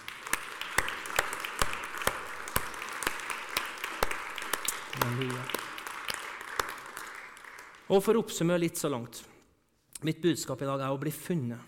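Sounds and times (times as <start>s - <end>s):
audience clapping: 0.0s - 9.0s
speech: 7.9s - 9.4s, 10.0s - 11.6s.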